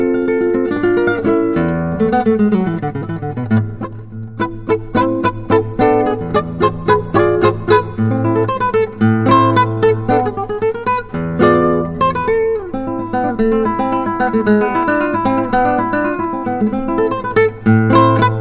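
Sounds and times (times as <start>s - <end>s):
milonga music: 0.0s - 18.3s.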